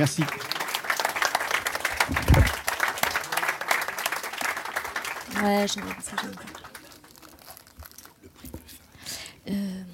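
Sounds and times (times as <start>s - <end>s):
speech: 0.0s - 0.5s, 5.4s - 6.6s
audience applause: 0.0s - 7.3s.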